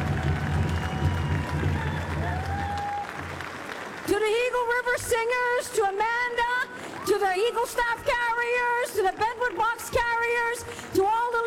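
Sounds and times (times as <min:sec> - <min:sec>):
audience applause: 0:00.0 - 0:04.9
speech: 0:04.2 - 0:06.5, 0:07.1 - 0:11.4.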